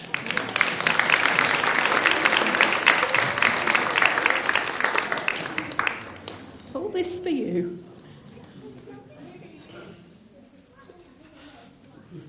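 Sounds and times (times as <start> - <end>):
audience applause: 0.0 - 6.8
speech: 7.3 - 7.9.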